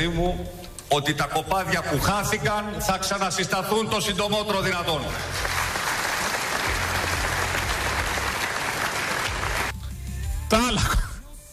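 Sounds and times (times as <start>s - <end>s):
speech: 0.0s - 5.6s, 10.5s - 11.0s
crowd applauding: 5.1s - 9.8s.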